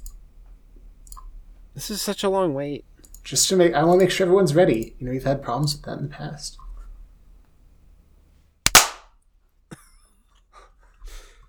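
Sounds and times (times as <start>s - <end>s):
speech: 1.8s - 6.6s
hand clap for recording sync: 8.7s - 9.0s.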